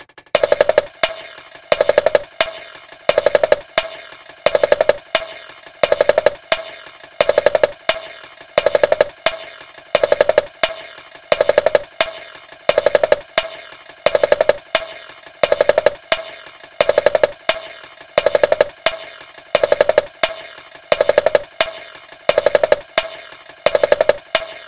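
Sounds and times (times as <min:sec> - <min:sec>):
beat ringtone: 0:00.0 - 0:24.6.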